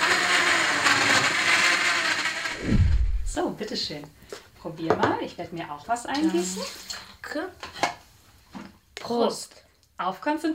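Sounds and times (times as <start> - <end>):
blender mixing a drink: 0.0 - 3.4
speech: 3.6 - 7.8, 9.1 - 10.5.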